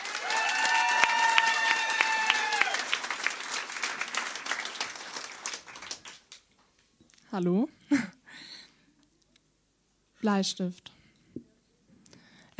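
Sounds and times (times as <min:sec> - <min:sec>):
audience applause: 0:00.0 - 0:06.4
speech: 0:07.3 - 0:08.2, 0:10.2 - 0:11.0.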